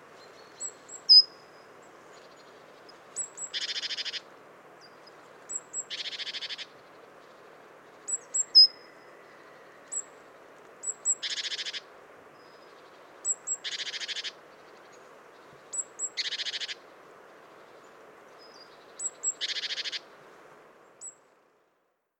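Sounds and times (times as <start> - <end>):
low hiss: 0.0 - 22.1
great tit high notes and rasping churrs: 0.2 - 4.2, 4.8 - 10.1, 12.4 - 15.0, 15.7 - 16.8, 18.4 - 20.0.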